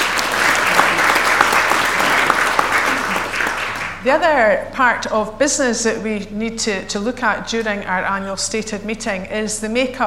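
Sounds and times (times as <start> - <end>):
audience applause: 0.0 - 4.0
speech: 4.0 - 10.0.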